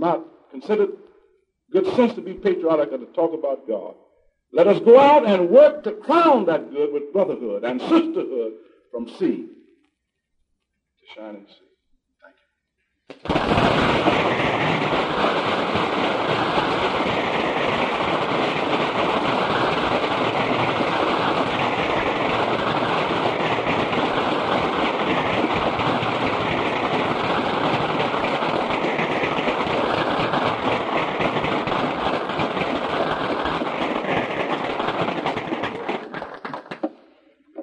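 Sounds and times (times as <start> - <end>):
speech: 0.0 - 1.1, 1.7 - 9.6, 11.1 - 11.6
standing ovation applause: 13.1 - 37.0.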